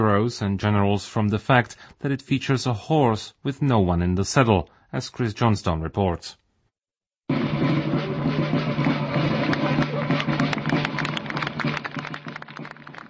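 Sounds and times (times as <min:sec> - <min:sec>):
speech: 0:00.0 - 0:06.4
drumbeat from soldiers in Napoleonic uniforms: 0:07.2 - 0:13.0
broken applause at a statue unveiling: 0:08.5 - 0:13.0.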